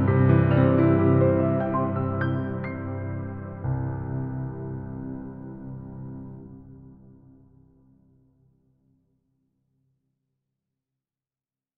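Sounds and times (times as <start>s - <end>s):
piano improvisation: 0.0s - 7.5s.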